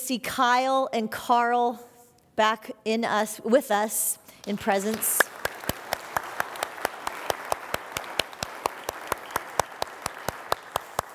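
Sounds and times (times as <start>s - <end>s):
speech: 0.1s - 5.3s
sharp evenly spaced claps: 4.4s - 11.1s.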